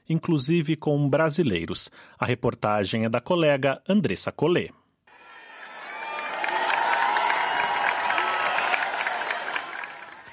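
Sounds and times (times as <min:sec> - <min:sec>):
speech: 0:00.1 - 0:04.8
crowd cheering in street: 0:05.1 - 0:10.3.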